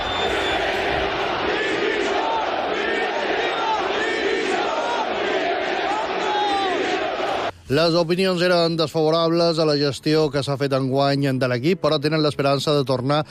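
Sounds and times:
Mallorca football fans chanting in protest: 0.0s - 7.5s
speech: 7.7s - 13.3s.

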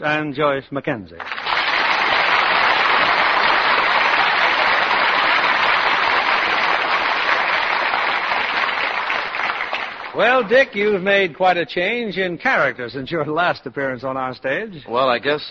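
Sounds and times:
speech: 0.0s - 1.4s, 10.2s - 15.4s
studio audience applause: 1.2s - 11.3s.

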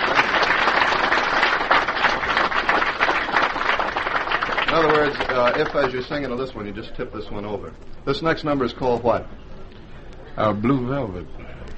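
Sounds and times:
audience applause: 0.0s - 6.1s
speech: 5.0s - 9.5s, 10.4s - 11.7s.

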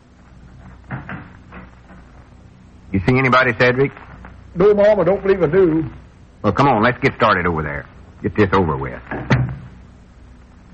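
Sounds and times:
low steady hum: 0.0s - 10.7s
speech: 2.9s - 4.0s, 4.6s - 9.4s
door opening with soft wooden clunks: 9.1s - 9.8s.

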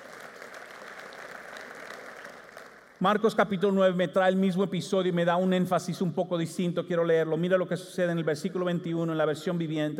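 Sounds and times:
audience applauding: 0.0s - 3.0s
speech: 3.0s - 9.9s.

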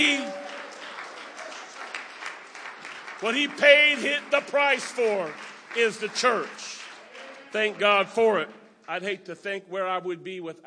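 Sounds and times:
church congregation clapping during a sermon: 0.0s - 8.5s
speech: 3.2s - 6.8s, 7.5s - 10.6s.

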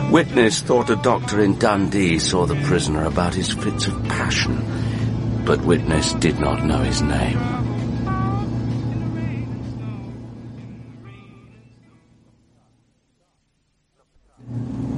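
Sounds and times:
car driving with a steady low engine hum: 0.0s - 13.0s
speech: 0.1s - 7.7s
higher wavering voice-like tones: 1.6s - 8.6s.

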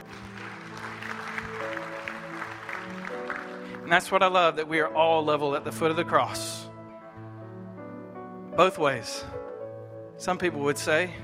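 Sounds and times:
audience clapping: 0.0s - 4.2s
speech: 3.9s - 6.6s, 8.6s - 9.4s, 10.2s - 11.2s.

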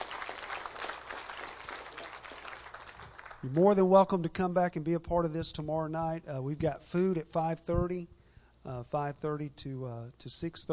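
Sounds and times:
audience clapping for three visiting churches: 0.0s - 3.6s
speech: 3.4s - 10.7s.

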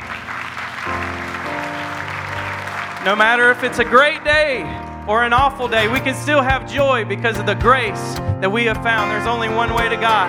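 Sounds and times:
audience clapping: 0.0s - 6.0s
speech: 3.0s - 10.2s.

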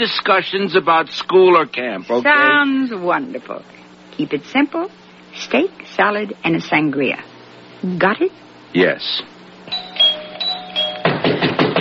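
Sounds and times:
speech: 0.0s - 9.8s
pounding on a door: 11.0s - 11.7s.

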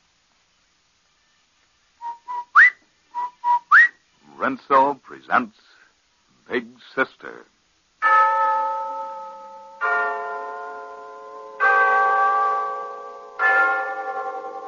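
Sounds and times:
speech: 4.4s - 5.7s, 6.5s - 8.2s
Glen Falls town hall clock chiming: 8.0s - 14.6s.

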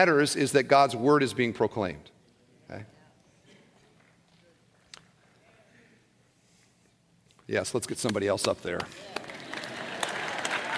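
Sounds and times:
speech: 0.0s - 2.1s, 2.7s - 3.0s, 7.5s - 9.2s
clapping from the audience: 8.1s - 10.7s.

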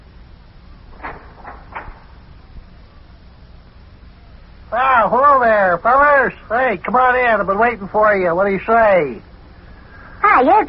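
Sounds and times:
office door opening: 0.8s - 2.8s
speech: 4.7s - 9.3s, 10.4s - 10.6s.

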